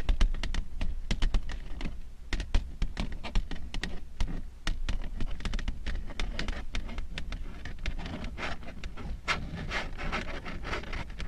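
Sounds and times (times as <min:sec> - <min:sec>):
long nails tapping and scratching: 0:00.0 - 0:11.2.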